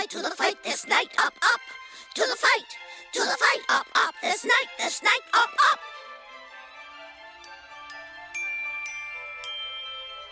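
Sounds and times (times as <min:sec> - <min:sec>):
speech: 0:00.1 - 0:06.0
musical clock chiming like little bells: 0:07.4 - 0:10.2.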